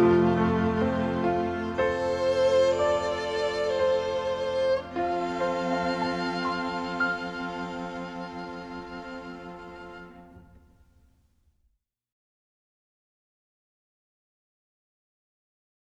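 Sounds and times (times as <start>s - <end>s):
music: 0.0s - 11.7s.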